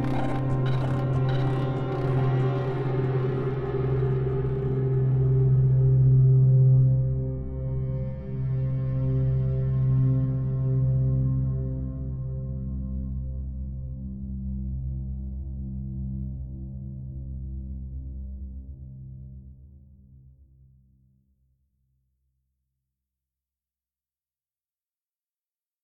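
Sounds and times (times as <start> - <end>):
dark ambient music with faster tempo: 0.0 - 15.7.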